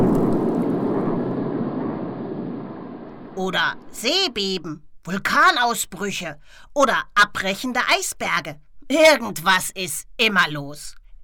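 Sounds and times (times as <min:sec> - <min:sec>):
lightning strike heard underwater in the sea: 0:00.0 - 0:04.0
speech: 0:03.4 - 0:11.2.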